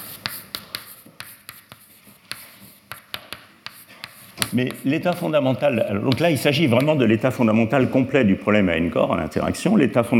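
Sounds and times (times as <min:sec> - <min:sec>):
writing on a blackboard during a physics lecture: 0:00.0 - 0:07.0
speech: 0:04.5 - 0:10.1.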